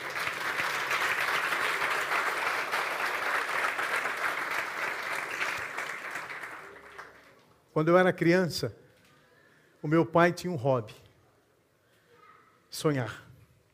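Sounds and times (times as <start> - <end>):
audience applauding: 0.0 - 7.5
speech: 7.8 - 8.8, 9.8 - 11.0, 12.8 - 13.2.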